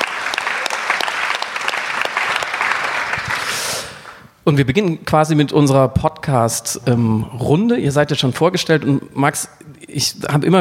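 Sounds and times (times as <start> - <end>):
crowd applause: 0.0 - 4.2
speech: 4.5 - 10.5.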